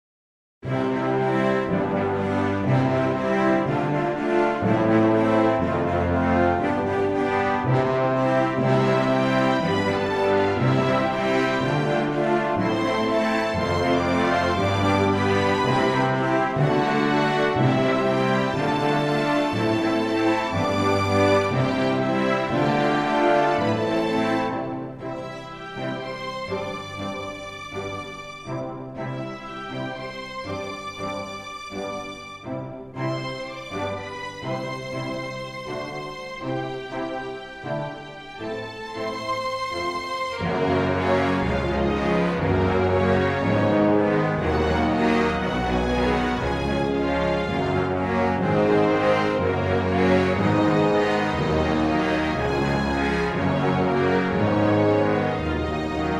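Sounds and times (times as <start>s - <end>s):
instrumental music: 0.6s - 56.1s.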